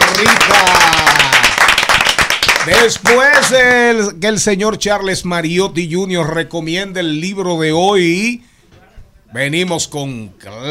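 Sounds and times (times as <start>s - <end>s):
applause: 0.0s - 3.6s
speech: 0.2s - 1.3s, 2.6s - 8.5s, 9.3s - 10.6s.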